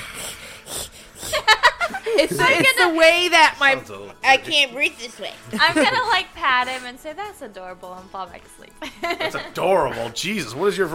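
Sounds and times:
person imitating snoring: 0.0s - 1.5s
laughter: 1.3s - 3.1s, 5.5s - 6.3s, 8.8s - 9.8s
speech: 2.2s - 10.9s.

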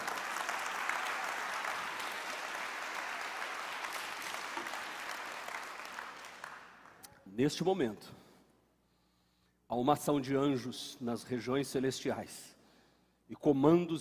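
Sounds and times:
sustained crowd applause: 0.0s - 7.0s
speech: 7.4s - 8.2s, 9.7s - 12.6s, 13.3s - 13.9s.

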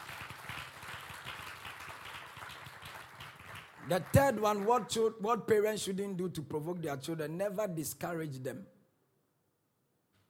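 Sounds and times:
hand clapping: 0.0s - 4.9s
speech: 3.9s - 8.8s.

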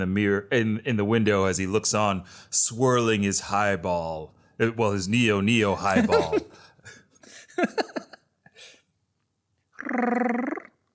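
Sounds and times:
speech: 0.0s - 7.0s, 7.6s - 8.0s, 9.8s - 10.6s
laughter: 5.8s - 6.6s, 7.3s - 8.2s
voice imitating a robot purr: 9.8s - 10.9s.

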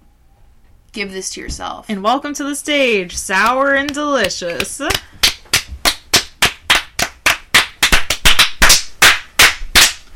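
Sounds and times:
speech: 1.0s - 5.2s
audience clapping in echoey room: 4.9s - 10.1s.

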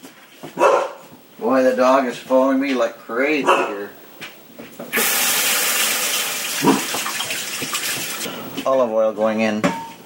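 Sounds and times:
speech: 1.4s - 4.0s, 8.7s - 9.8s
rinsing hands under running tap water: 4.9s - 8.3s.

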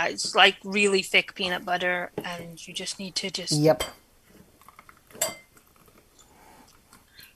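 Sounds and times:
speech: 0.0s - 4.0s
spoon clinking on a container: 5.1s - 5.6s.

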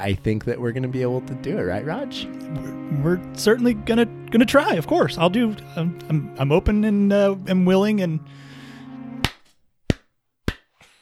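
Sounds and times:
speech: 0.0s - 8.5s
hand claps from one person: 9.2s - 10.9s.

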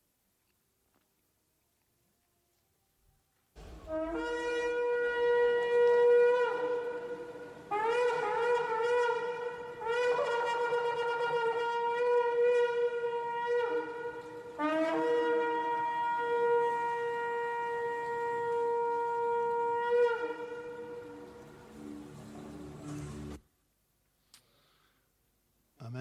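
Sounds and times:
shofar ram's horn blasts: 3.6s - 23.4s.

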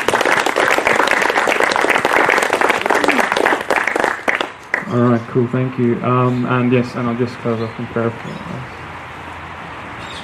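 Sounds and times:
group of people clapping together: 0.0s - 4.9s
speech: 4.9s - 8.8s.

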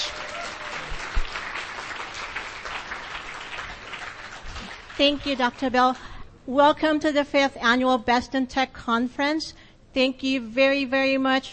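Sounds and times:
audience applause: 0.0s - 5.6s
speech: 5.0s - 11.5s.

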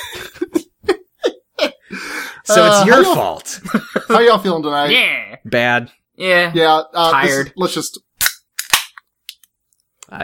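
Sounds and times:
laughter: 0.0s - 2.0s, 2.6s - 4.5s
speech: 2.5s - 8.1s
Busch beer can cracking open: 8.2s - 9.5s.

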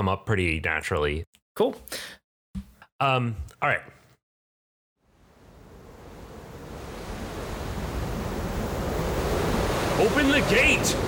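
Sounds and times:
speech: 0.0s - 4.0s, 10.0s - 11.0s
howling wind: 5.1s - 11.0s.

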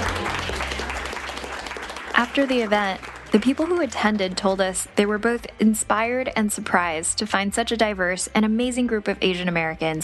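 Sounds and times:
audience applause: 0.0s - 4.4s
speech: 2.2s - 10.0s.

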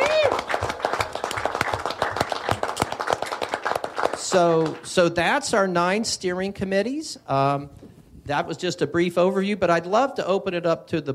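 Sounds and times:
round of applause: 0.0s - 4.9s
speech: 4.3s - 11.1s.

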